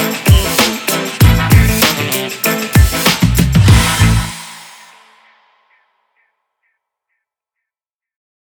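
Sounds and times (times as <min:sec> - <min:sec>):
hip hop music: 0:00.0 - 0:05.4.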